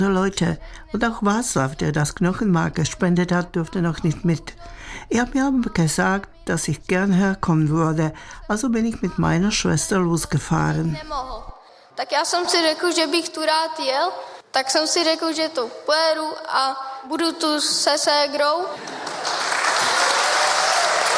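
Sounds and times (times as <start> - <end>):
speech: 0.0 - 19.4
audience applause: 18.8 - 21.1.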